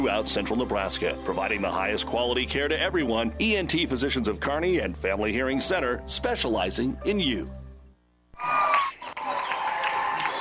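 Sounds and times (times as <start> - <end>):
speech: 0.0 - 7.6
cheers: 8.4 - 10.3
warm applause from basketball fans: 8.4 - 10.3.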